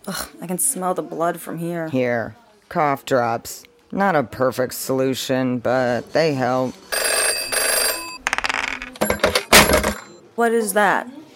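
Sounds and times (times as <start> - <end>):
speech: 0.1 - 6.9, 10.4 - 11.2
telephone ringing: 6.9 - 10.2.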